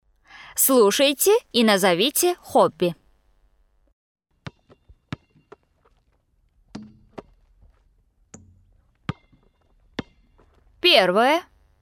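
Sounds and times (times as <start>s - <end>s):
speech: 0.6s - 3.0s, 10.9s - 11.5s
big ball bouncing: 4.4s - 5.7s, 6.7s - 7.4s, 8.3s - 10.6s.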